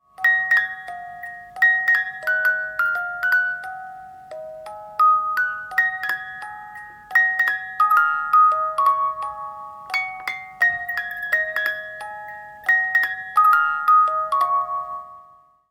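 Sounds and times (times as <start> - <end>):
music boxes: 0.0 - 15.7.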